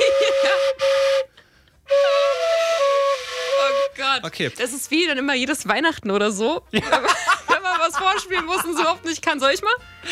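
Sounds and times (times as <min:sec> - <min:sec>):
tone blown on a flute-like instrument: 0:00.0 - 0:04.2
speech: 0:04.2 - 0:07.3, 0:07.9 - 0:10.1
laughter: 0:06.7 - 0:09.1.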